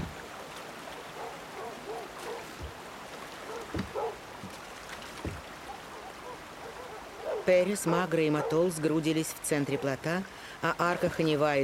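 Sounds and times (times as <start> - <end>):
dogs barking: 1.0 - 2.6, 3.4 - 4.2, 5.6 - 7.5, 8.3 - 8.7, 9.7 - 10.0
speech: 7.5 - 11.6.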